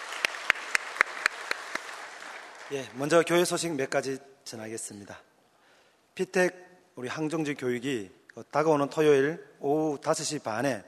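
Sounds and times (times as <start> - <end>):
church congregation clapping in unison to glorify God: 0.0 - 3.5
speech: 2.7 - 5.3, 6.2 - 10.8.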